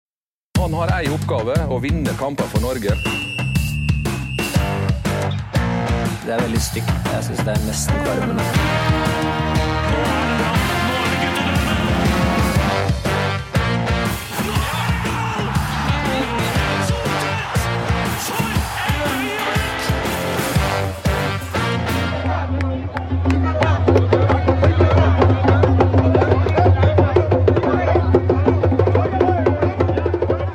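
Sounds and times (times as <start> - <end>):
speech: 0.6 - 3.2, 6.2 - 10.5
driving drumbeats: 0.6 - 30.5
crowd of fans singing and chanting: 7.9 - 13.0, 14.0 - 30.5.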